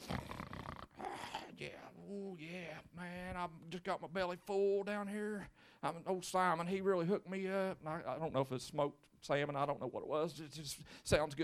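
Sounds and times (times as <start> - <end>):
person imitating loud snoring with gravelly snorts: 0.0 - 1.6
speech: 1.5 - 11.4.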